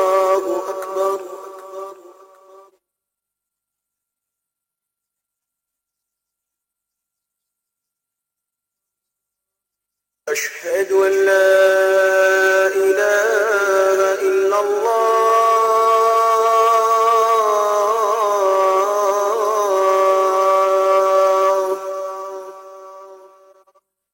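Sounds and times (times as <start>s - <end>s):
Azan call to prayer: 0.0s - 2.8s, 10.3s - 23.6s.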